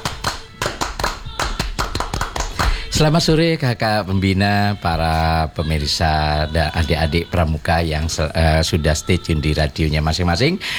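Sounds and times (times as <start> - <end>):
Indonesian Scout rhythmic group clap: 0.0 - 3.3
speech: 3.0 - 10.7.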